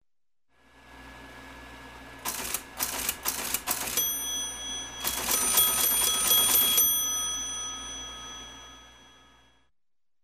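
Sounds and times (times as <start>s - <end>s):
teletype printing intermittently: 2.2s - 7.6s.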